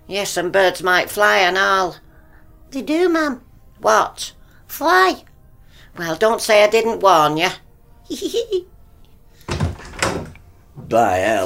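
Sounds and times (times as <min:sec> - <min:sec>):
speech: 0:00.1 - 0:02.0, 0:02.7 - 0:05.3, 0:06.0 - 0:08.7, 0:10.9 - 0:11.4
house door opening and closing: 0:09.4 - 0:10.5.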